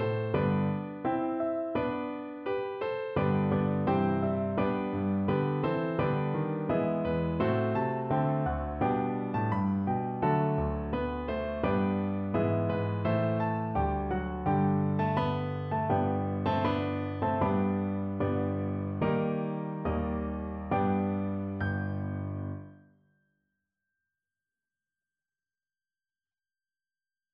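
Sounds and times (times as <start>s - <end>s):
intermediate piano duet of a Christmas carol: 0.0s - 22.8s.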